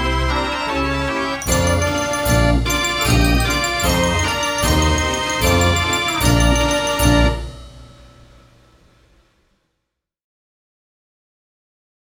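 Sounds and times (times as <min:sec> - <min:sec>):
barrel organ: 0:00.0 - 0:07.7.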